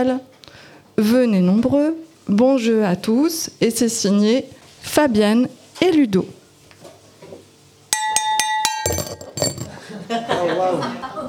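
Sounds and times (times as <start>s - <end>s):
speech: 0.0s - 0.3s, 1.0s - 6.4s
champagne coupe clinks: 7.9s - 9.8s
broken champagne coupe clattering: 8.0s - 9.8s
laughter: 9.7s - 11.2s.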